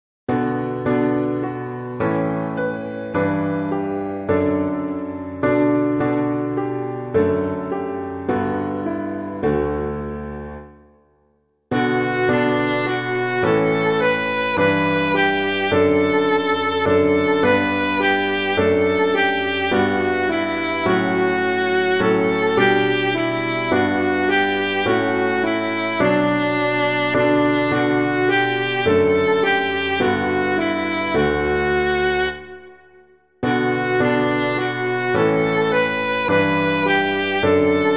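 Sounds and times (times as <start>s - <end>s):
piano: 0.3s - 37.9s.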